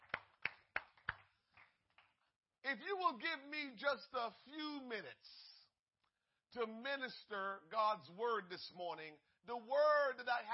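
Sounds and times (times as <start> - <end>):
audience clapping hands: 0.0 - 2.2
speech: 2.7 - 5.5, 6.5 - 10.5.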